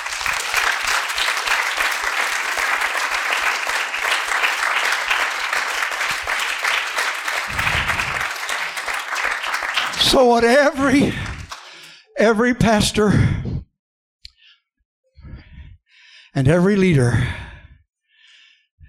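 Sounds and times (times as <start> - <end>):
large group clapping hands: 0.0 - 12.0
speech: 10.2 - 11.3, 12.2 - 13.4, 16.4 - 17.4.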